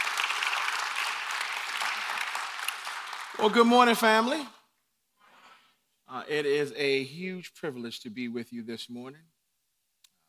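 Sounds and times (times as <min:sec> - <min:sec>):
audience applause: 0:00.0 - 0:04.4
speech: 0:03.4 - 0:04.6, 0:06.1 - 0:09.3.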